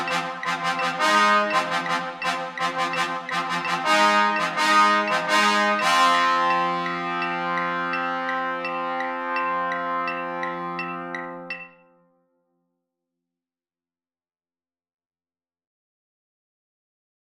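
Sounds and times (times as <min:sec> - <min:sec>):
marching band: 0:00.0 - 0:11.8
tenor trombones in a marching band: 0:00.0 - 0:12.0.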